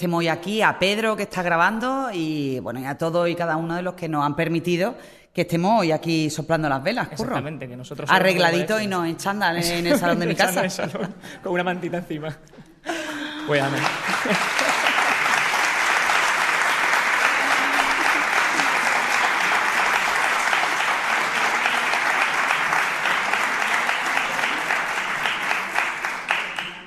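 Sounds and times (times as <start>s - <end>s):
speech: 0.0s - 14.5s
laughter: 9.6s - 11.5s, 12.5s - 26.6s
audience applause: 13.4s - 26.8s.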